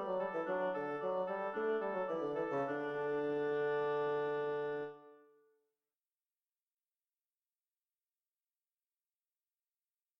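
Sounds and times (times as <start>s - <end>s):
oboe playing a gavotte in D major: 0.0s - 5.2s.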